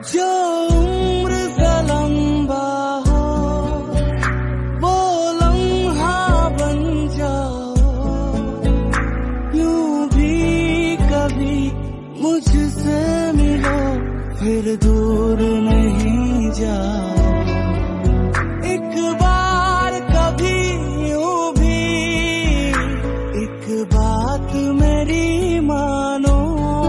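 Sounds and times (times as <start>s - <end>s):
Krishna bhajan ringtone: 0.0s - 26.8s.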